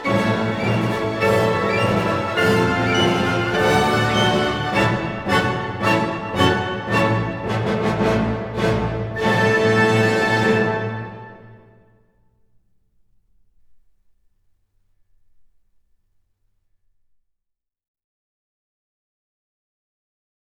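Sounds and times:
piano concerto allegro animato: 0.0 - 11.8.

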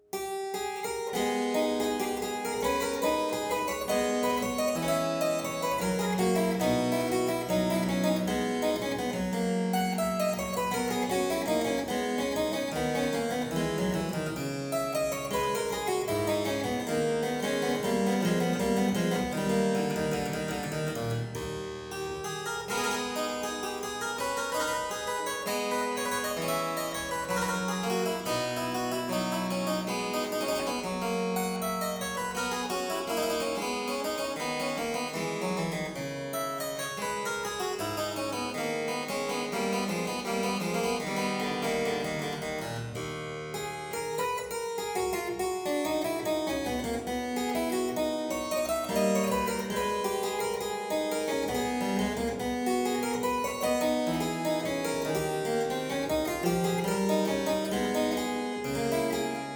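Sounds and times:
harpsichord playing a courante in A minor: 0.1 - 59.5.

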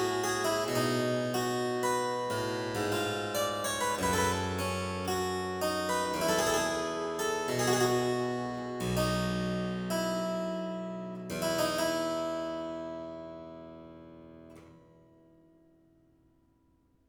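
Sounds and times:
harpsichord sarabande in F major: 0.0 - 13.0.

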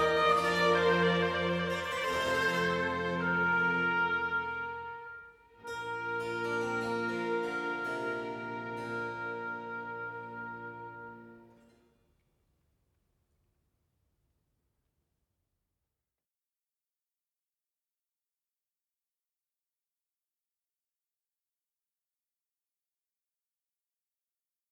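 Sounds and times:
oboe concerto in B flat major: 0.0 - 11.7.

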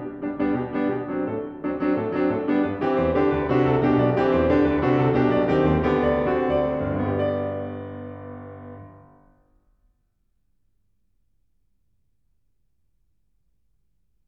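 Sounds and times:
fast piano piece allegro molto: 0.0 - 9.3.

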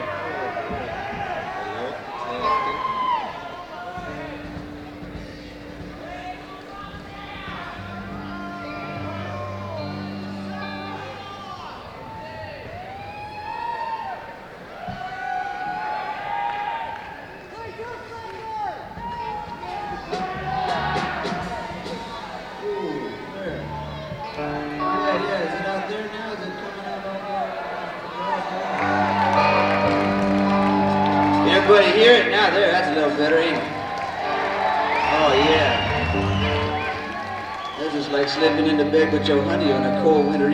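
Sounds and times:
live crowd in New York City: 0.0 - 40.5
instruments tuning at a live show in New York City: 3.8 - 13.4, 18.5 - 26.4, 28.7 - 40.5.

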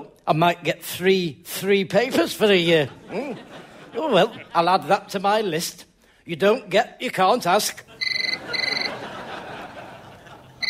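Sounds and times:
speech: 0.3 - 8.0
laughter: 2.6 - 4.9, 7.8 - 10.6
telephone ringing: 8.0 - 9.2.

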